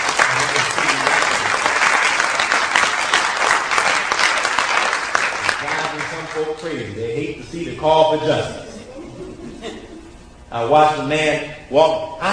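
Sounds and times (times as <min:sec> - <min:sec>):
audience applause: 0:00.0 - 0:06.6
laughter: 0:00.2 - 0:01.7, 0:07.0 - 0:10.3
speech: 0:06.6 - 0:08.6, 0:10.5 - 0:12.3.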